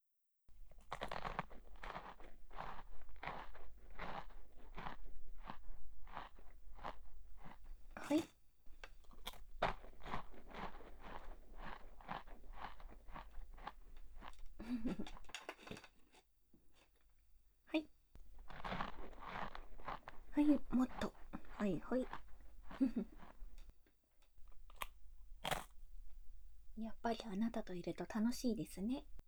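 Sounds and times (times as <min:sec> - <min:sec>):
chewing and biting chocolate pie: 0:00.6 - 0:15.9, 0:18.2 - 0:23.7, 0:24.4 - 0:25.8
speech: 0:08.1 - 0:08.4, 0:21.7 - 0:22.2, 0:27.1 - 0:29.1.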